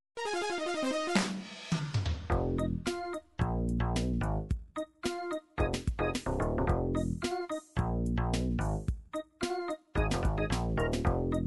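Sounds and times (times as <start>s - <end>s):
anime cha-cha music: 0.2s - 11.4s.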